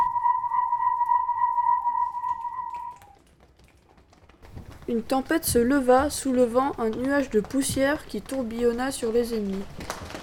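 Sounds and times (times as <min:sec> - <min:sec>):
magic whistle being blown: 0:00.0 - 0:03.2
speech: 0:04.9 - 0:10.0.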